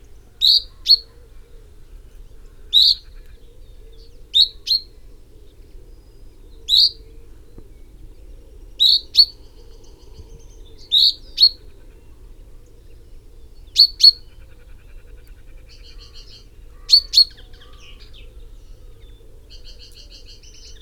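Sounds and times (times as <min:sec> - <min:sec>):
common chaffinch song: 0:00.0 - 0:01.2, 0:06.0 - 0:07.2, 0:07.8 - 0:14.6, 0:15.6 - 0:20.8.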